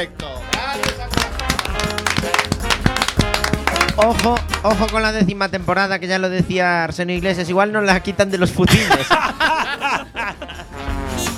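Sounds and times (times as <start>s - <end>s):
applause: 0.5s - 5.0s
speech: 4.0s - 10.4s
laughter: 8.7s - 10.8s.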